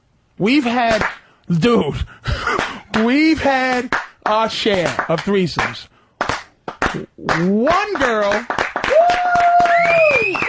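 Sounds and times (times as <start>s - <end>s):
speech: 0.4s - 2.4s, 3.0s - 5.9s, 7.0s - 9.3s
slow hand claps: 0.9s - 1.2s, 2.5s - 10.4s.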